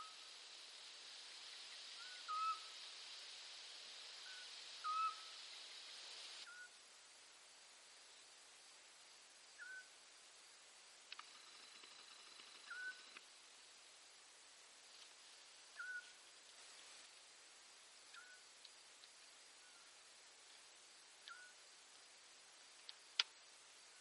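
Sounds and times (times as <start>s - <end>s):
quiet background hiss: 0.0s - 24.0s
Eurasian scops owl whistled note: 2.0s - 2.7s, 4.2s - 5.3s, 6.5s - 6.7s.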